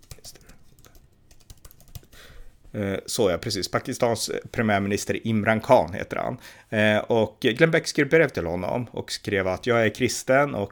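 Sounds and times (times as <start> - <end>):
typing on a computer keyboard to search Google: 0.0 - 2.2
speech: 2.7 - 10.7.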